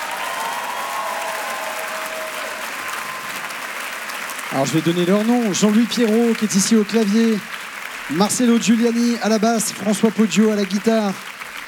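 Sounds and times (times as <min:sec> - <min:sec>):
audience applauding the musicians: 0:00.0 - 0:11.6
speech: 0:04.5 - 0:11.3.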